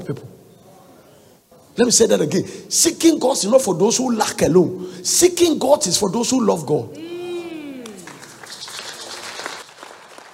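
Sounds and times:
speech: 0.0 - 0.4, 1.8 - 7.2
audience clapping: 7.8 - 10.3.

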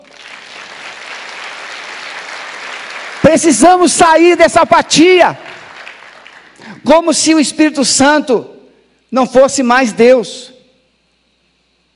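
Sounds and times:
church audience applauding: 0.0 - 6.7
speech: 3.3 - 5.5, 6.9 - 10.6.

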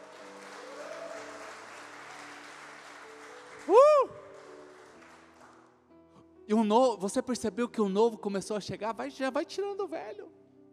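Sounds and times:
applause: 0.0 - 5.8
speech: 6.5 - 10.4.

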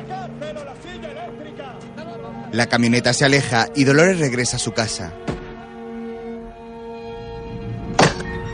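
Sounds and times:
speech: 2.5 - 5.3
axe driven into a wooden block: 8.0 - 8.3.

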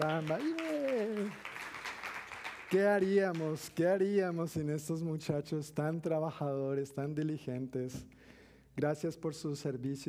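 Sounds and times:
speech: 0.0 - 1.5, 2.7 - 8.2, 8.8 - 10.0
audience applause: 0.0 - 3.5.

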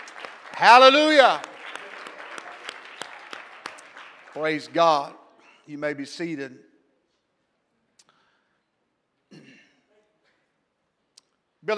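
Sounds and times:
audience clapping hands: 0.0 - 5.2
speech: 0.6 - 1.5, 4.4 - 6.7.

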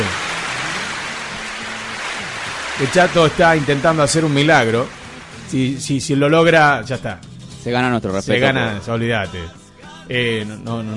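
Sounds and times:
applause: 0.0 - 6.2
speech: 2.8 - 10.9.

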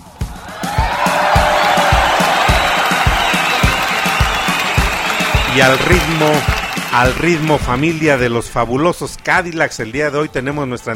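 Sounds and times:
audience applause and cheering: 0.1 - 8.4
speech: 5.6 - 10.9.

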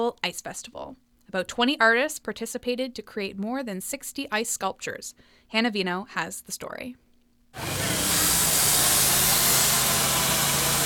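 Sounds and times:
speech: 0.0 - 8.0
chainsaw roaring at full throttle: 7.6 - 10.8.

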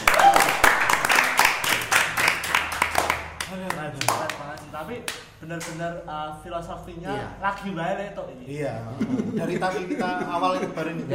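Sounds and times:
hand clapping: 0.0 - 5.9
speech: 4.9 - 11.1
laughter: 8.9 - 11.1.

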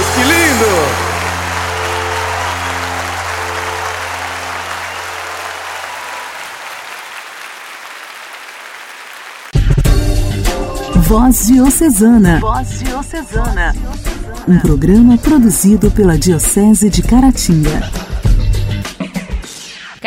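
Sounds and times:
music: 0.0 - 6.7, 9.5 - 20.0
crowd applause: 0.0 - 9.8
speech: 11.1 - 18.0.

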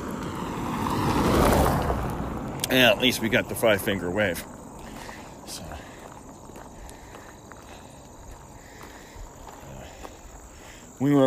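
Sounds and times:
speeding car passing by: 0.0 - 4.5
speech: 2.7 - 4.6, 11.0 - 11.2.

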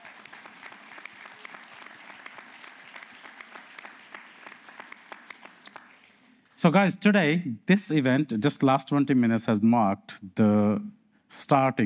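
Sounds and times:
audience applause: 0.0 - 6.2
speech: 6.6 - 11.8.

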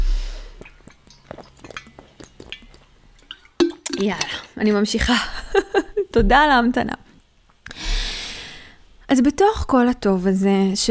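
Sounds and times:
person taking a sip of water: 0.4 - 4.6
speech: 4.0 - 7.0, 9.1 - 10.9.

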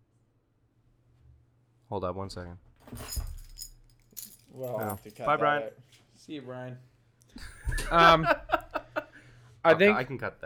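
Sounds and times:
speech: 1.9 - 3.3, 4.6 - 8.4, 9.6 - 10.4
car keys jangling as they are handed over: 2.8 - 5.4
laughter: 7.4 - 9.3.

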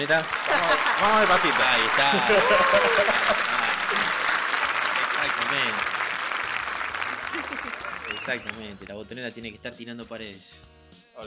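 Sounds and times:
speech: 0.0 - 4.1, 5.2 - 5.9, 8.3 - 11.2
voices talking and cheering: 0.0 - 5.8, 7.3 - 8.9
crowd clapping: 0.0 - 9.0
laughter: 0.3 - 5.8, 7.0 - 8.6.

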